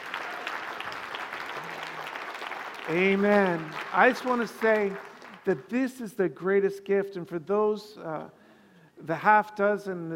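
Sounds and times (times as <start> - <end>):
audience applause: 0.0 - 5.4
speech: 2.9 - 8.4, 9.0 - 10.1.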